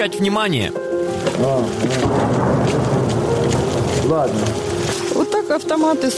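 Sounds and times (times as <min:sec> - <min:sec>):
speech: 0:00.0 - 0:02.8, 0:04.1 - 0:06.1
distant explosion: 0:02.0 - 0:04.4.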